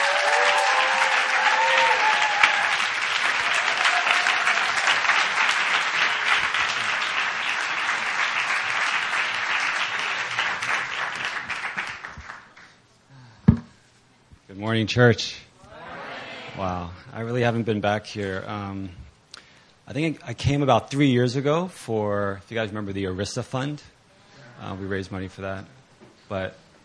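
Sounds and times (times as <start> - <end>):
congregation applause welcoming a guest speaker in a church sanctuary: 0.0 - 12.8
speech: 14.8 - 15.4, 16.9 - 19.0, 19.9 - 24.0, 24.6 - 26.6.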